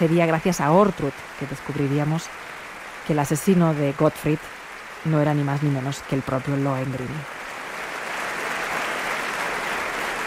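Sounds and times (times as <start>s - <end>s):
speech: 0.0s - 7.4s
opera audience applauding: 7.4s - 10.2s.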